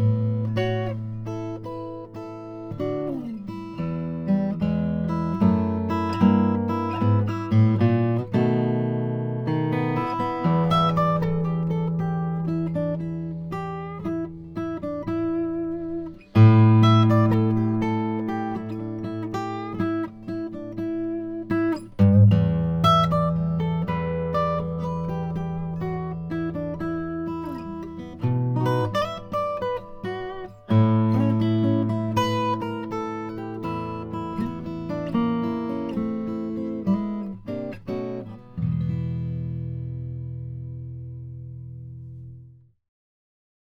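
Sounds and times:
Martin Custom Shop 000 28 Brazilian rosewood guitar: 0.0 - 42.6.

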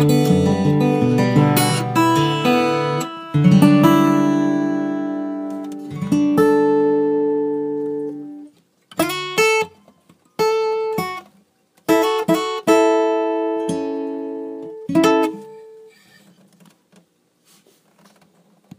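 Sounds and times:
Gibson Country Western natural guitar playing: 0.0 - 11.3, 11.9 - 16.1.

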